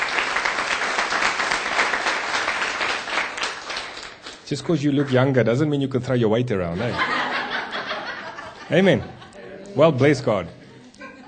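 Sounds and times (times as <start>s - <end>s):
church congregation applauding at an evening service: 0.0s - 5.4s
speech: 4.5s - 7.2s, 8.7s - 9.2s, 9.8s - 10.6s
laughter: 6.7s - 9.7s, 10.6s - 11.2s.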